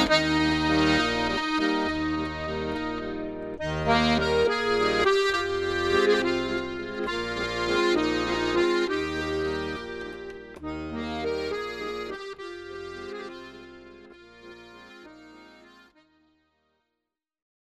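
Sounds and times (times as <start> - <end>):
accordion song: 0.0 - 16.2.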